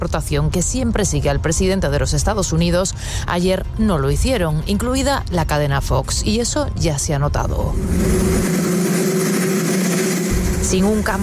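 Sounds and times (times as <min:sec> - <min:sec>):
speech: 0:00.0 - 0:08.5, 0:10.6 - 0:11.2
helicopter noise in the White House garden: 0:07.7 - 0:11.2.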